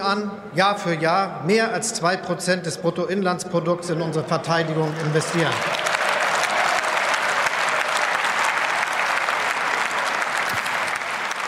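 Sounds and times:
speech: 0.0s - 5.8s
standing ovation applause: 4.6s - 11.4s.

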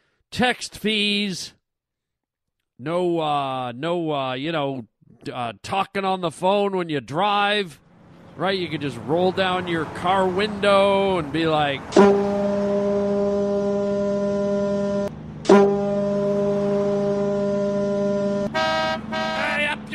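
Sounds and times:
speech: 0.3s - 1.6s, 2.8s - 7.8s, 8.4s - 12.3s
conch shell horn blast: 11.9s - 19.8s.

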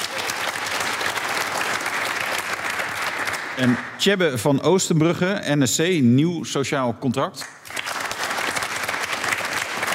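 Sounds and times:
audience applause: 0.0s - 3.9s, 7.6s - 9.9s
speech: 3.6s - 7.6s.

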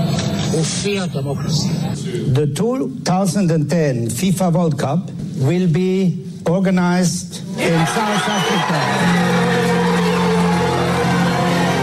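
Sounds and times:
speech: 0.6s - 9.8s
excited crowd cheering: 7.6s - 11.8s.

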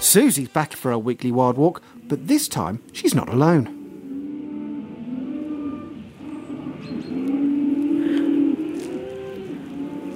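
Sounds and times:
speech: 0.1s - 3.8s
cattle bellowing and shrieking in a muddy field: 3.5s - 10.1s.

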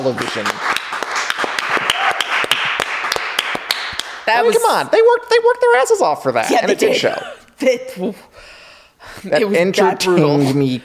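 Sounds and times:
speech: 0.0s - 0.8s, 4.3s - 8.5s, 9.2s - 10.8s
round of applause, hands clapping: 0.0s - 4.6s.

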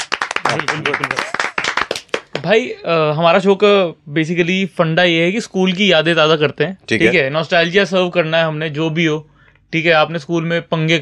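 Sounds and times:
audience clapping: 0.0s - 2.6s
speech: 0.4s - 1.4s, 2.4s - 11.0s.

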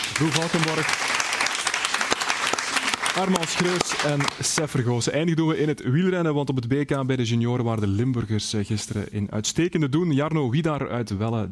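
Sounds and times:
audience applause for the guests: 0.0s - 4.8s
speech: 0.2s - 1.2s, 3.2s - 11.5s.

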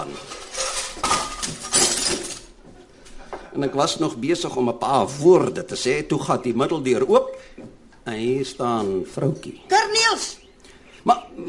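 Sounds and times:
teacups and saucers crashing off a tray: 0.0s - 2.6s
speech: 3.6s - 10.3s, 11.0s - 11.4s.

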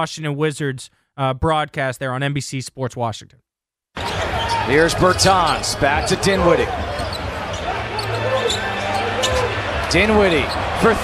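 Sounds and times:
speech: 0.0s - 3.5s, 4.7s - 7.0s, 9.9s - 11.0s
arena crowd cheering after three-pointer: 4.0s - 11.0s.

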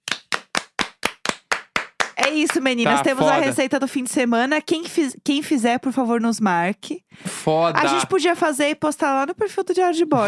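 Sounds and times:
hands clapping: 0.0s - 3.6s
speech: 2.3s - 10.2s.

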